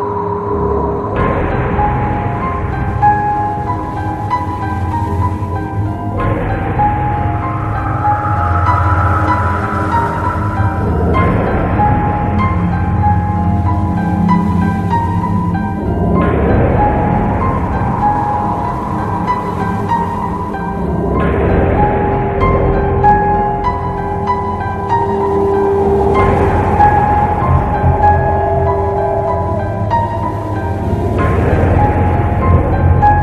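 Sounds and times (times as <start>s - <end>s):
ambience: 0.0s - 33.2s.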